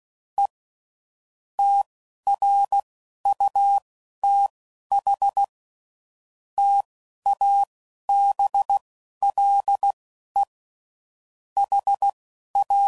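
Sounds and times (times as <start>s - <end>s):
CW Morse code groups at 10 WPM: 1.6s - 5.5s, 6.6s - 10.5s, 11.6s - 12.8s.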